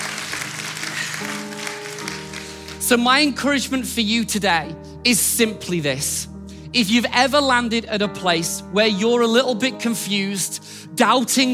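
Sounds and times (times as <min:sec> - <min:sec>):
audience applause: 0:00.0 - 0:02.8
speech: 0:02.9 - 0:11.5.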